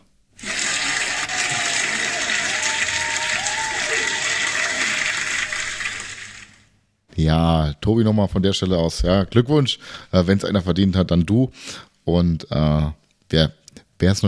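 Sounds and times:
crowd applause sound effect from soundboard: 0:00.4 - 0:06.7
speech: 0:07.2 - 0:14.2.

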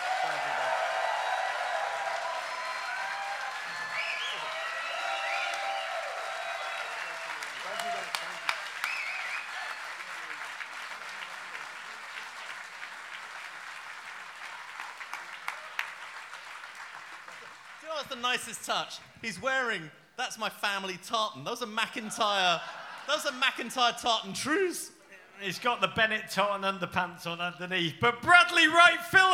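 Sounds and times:
audience applause: 0:00.0 - 0:18.8
speech: 0:18.0 - 0:29.3
laughter: 0:21.9 - 0:23.8.

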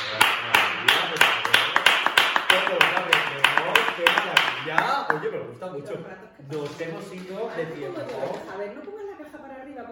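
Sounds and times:
sharp hand claps: 0:00.0 - 0:05.3
speech: 0:05.7 - 0:09.0.

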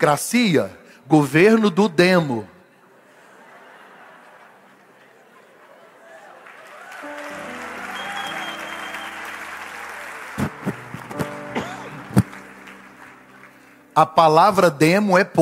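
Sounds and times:
speech: 0:00.0 - 0:02.5, 0:14.0 - 0:15.4
laughter: 0:02.8 - 0:06.4
audience applause: 0:05.6 - 0:14.0.

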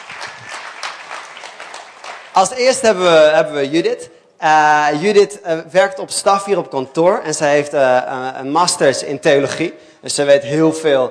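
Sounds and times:
audience applause: 0:00.0 - 0:02.8
speech: 0:02.4 - 0:11.0.

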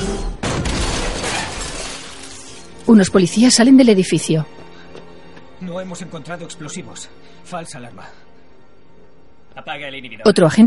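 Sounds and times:
hanging lamp crashing down onto a man: 0:00.4 - 0:02.7
breaking and clattering debris: 0:00.4 - 0:03.0
speech: 0:02.9 - 0:04.6, 0:05.6 - 0:08.3, 0:09.6 - 0:10.6.

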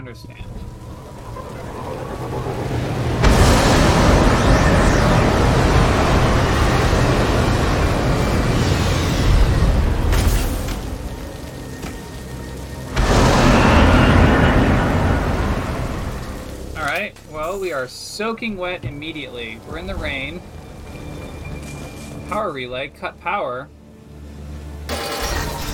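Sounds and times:
speech: 0:00.1 - 0:00.6, 0:17.8 - 0:20.6, 0:22.3 - 0:23.8
video game grenade launcher explosions: 0:00.6 - 0:11.4, 0:12.8 - 0:16.8.

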